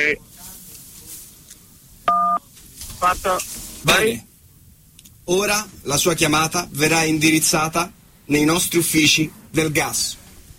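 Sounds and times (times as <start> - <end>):
speech: 0.0 - 0.3, 3.0 - 4.3, 5.3 - 10.2
faint telephone line hiss: 0.0 - 10.5
telephone keypad tone from pressing key 1: 2.1 - 2.4.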